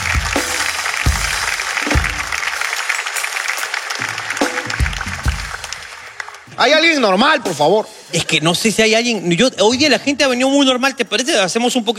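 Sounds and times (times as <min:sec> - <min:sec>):
audience applause: 0:00.0 - 0:06.8
speech: 0:06.6 - 0:11.9.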